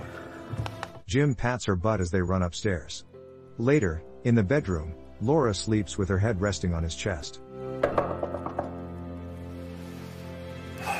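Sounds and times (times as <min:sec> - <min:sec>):
speech: 0:01.1 - 0:08.1
knocking on a door: 0:07.8 - 0:08.8.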